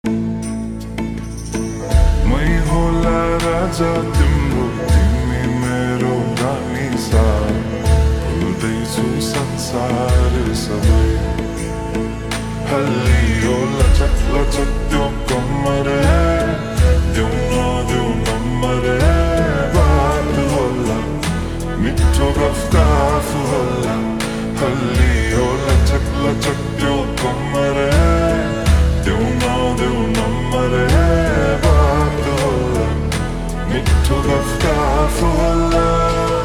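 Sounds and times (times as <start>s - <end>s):
slowed reverb music: 0.0s - 36.4s.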